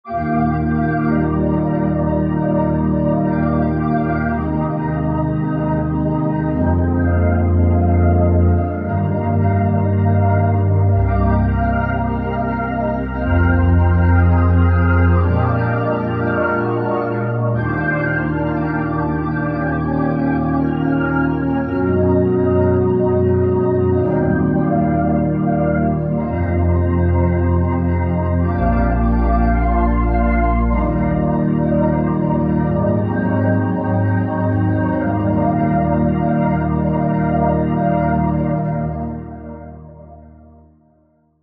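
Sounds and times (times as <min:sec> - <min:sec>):
Hammond organ test playing: 0:00.1 - 0:40.5.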